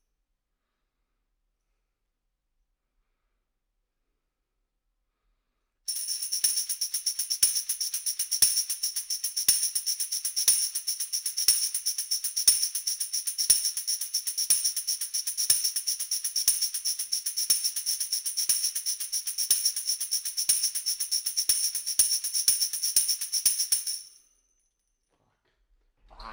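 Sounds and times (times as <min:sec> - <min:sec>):
tambourine: 0:05.9 - 0:24.5.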